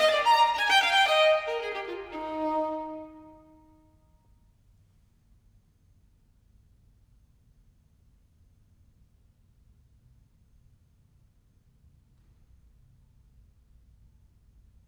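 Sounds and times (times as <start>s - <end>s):
gigue dance music: 0.0s - 3.4s.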